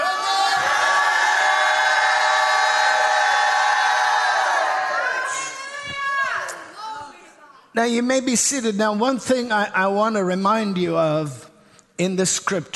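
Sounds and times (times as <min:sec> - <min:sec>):
audience shouting: 0:00.0 - 0:06.9
speech: 0:07.8 - 0:11.4, 0:12.0 - 0:12.7.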